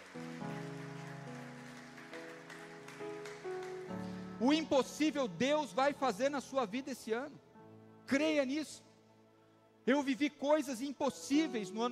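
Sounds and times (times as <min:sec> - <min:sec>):
audience applauding: 0:00.0 - 0:04.2
speech: 0:04.4 - 0:07.5, 0:08.1 - 0:08.9, 0:09.8 - 0:11.9.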